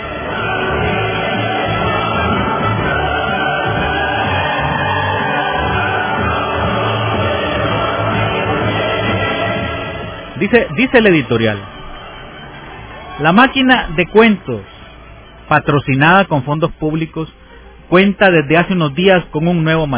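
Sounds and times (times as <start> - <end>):
recorded applause: 0.0 - 15.5
speech: 10.4 - 11.7, 13.2 - 14.7, 15.5 - 19.9.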